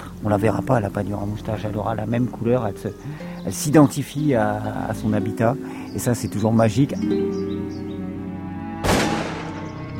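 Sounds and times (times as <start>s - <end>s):
speech: 0.2s - 7.8s
hunting gunshot detonations: 8.8s - 9.7s.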